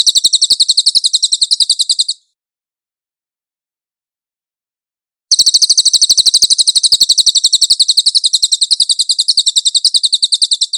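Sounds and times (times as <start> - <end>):
cililin chirping song: 0.0 - 2.3, 5.3 - 10.7.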